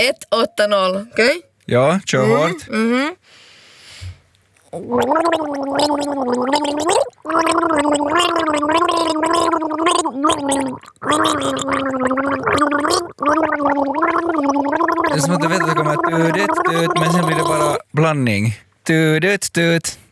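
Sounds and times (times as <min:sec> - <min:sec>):
speech: 0:00.0 - 0:03.4, 0:04.7 - 0:20.0
person gargling a song's melody: 0:04.7 - 0:17.9.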